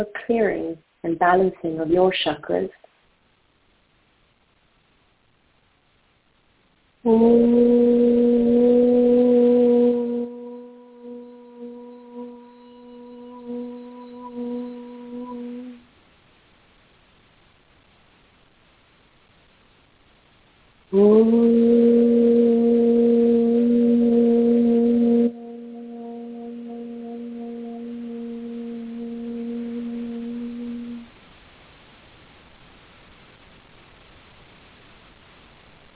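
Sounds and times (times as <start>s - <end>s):
speech: 0.0s - 2.9s, 7.0s - 8.2s
chakra balancing meditation tones: 7.0s - 15.9s, 20.9s - 31.1s.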